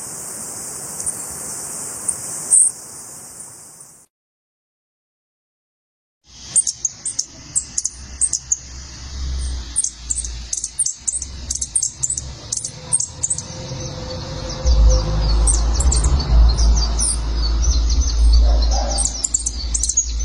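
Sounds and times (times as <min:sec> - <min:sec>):
yellow-crowned tanager singing: 0:02.1 - 0:02.8, 0:06.4 - 0:20.2.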